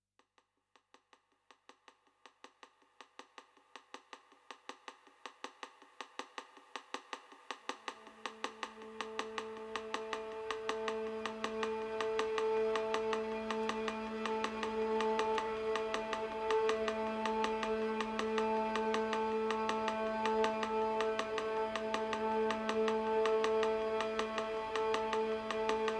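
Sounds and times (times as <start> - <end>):
ticking drone: 8.0 - 25.9.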